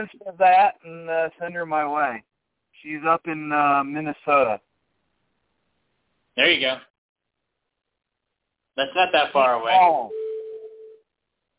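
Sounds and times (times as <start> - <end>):
speech: 0.0 - 4.7, 6.4 - 6.9, 8.8 - 10.2
phone email notification beep: 10.1 - 11.0.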